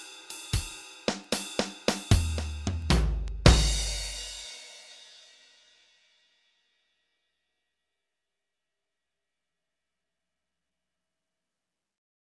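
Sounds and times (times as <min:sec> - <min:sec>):
drum track: 0:00.0 - 0:05.2.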